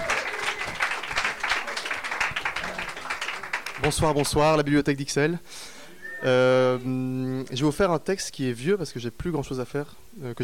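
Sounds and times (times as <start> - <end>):
audience applause: 0.0 - 4.6
speech: 3.8 - 10.4.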